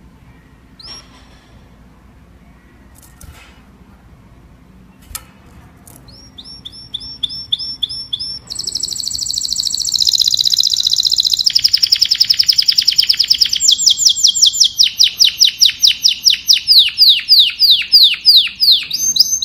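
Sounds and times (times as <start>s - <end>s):
domestic canary singing: 0.4s - 1.1s, 6.0s - 19.4s.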